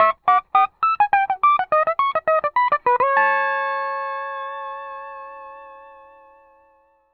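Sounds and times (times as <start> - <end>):
music loop: 0.0 - 3.2.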